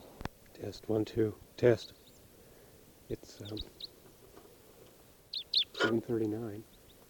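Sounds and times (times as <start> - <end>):
speech: 0.6 - 2.0, 3.1 - 3.9, 5.8 - 6.7
type 4 red crossbill calls: 1.7 - 2.3, 3.3 - 4.6, 5.2 - 7.0.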